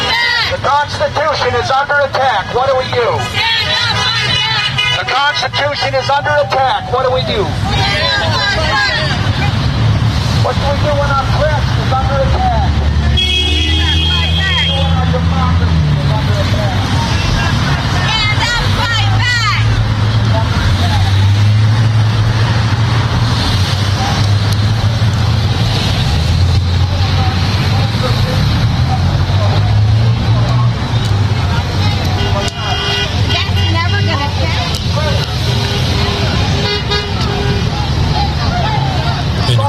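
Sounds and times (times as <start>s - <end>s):
crowd murmuring: 0.0s - 39.6s
low traffic rumble: 0.0s - 39.6s
speech: 0.6s - 4.1s, 5.0s - 8.9s, 10.4s - 12.5s
car horns honking in support at a protest: 2.6s - 7.1s, 13.1s - 15.1s, 32.0s - 34.4s, 35.3s - 38.0s.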